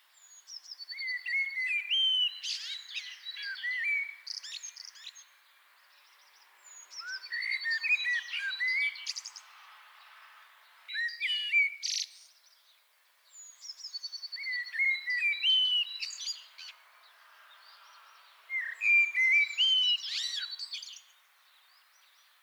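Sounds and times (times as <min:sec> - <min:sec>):
common blackbird Turdus merula singing: 0:00.2 - 0:05.3, 0:06.7 - 0:09.4, 0:13.4 - 0:16.8, 0:18.5 - 0:22.3.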